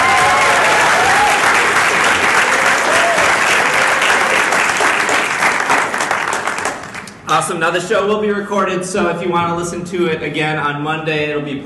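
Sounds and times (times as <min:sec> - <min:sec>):
audience applause: 0:00.0 - 0:07.2
speech: 0:07.5 - 0:11.6.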